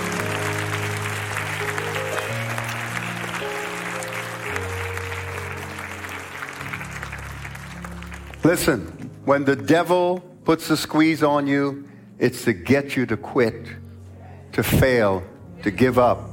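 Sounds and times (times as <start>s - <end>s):
audience hand clapping: 0.0s - 9.2s
sustained organ chords: 0.0s - 14.0s
speech: 8.5s - 13.8s, 14.5s - 16.3s.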